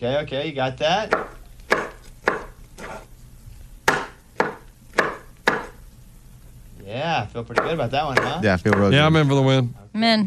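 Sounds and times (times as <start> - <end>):
speech: 0.0 - 1.4, 6.9 - 10.2
knife chopping fruit or vegetables on a cutting board: 1.0 - 3.1, 3.8 - 5.8, 7.5 - 9.0.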